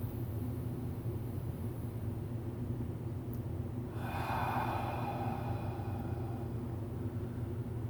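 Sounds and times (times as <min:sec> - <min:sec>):
steady low hum: 0:00.0 - 0:07.8
slow deep breath in: 0:03.9 - 0:07.6.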